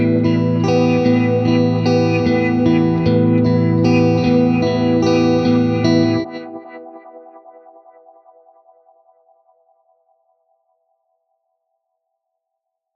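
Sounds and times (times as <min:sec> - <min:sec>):
guitar: 0:00.0 - 0:09.3.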